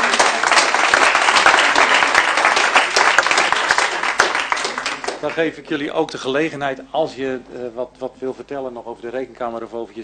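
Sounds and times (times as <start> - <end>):
applause: 0.0 - 5.6
speech: 5.2 - 10.0.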